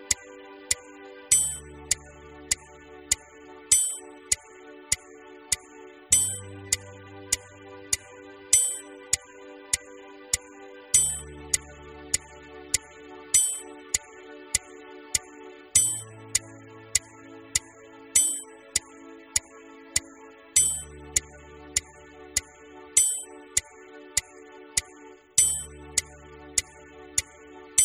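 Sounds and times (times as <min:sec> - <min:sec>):
warm-up exercise playalong music: 0:00.0 - 0:27.8.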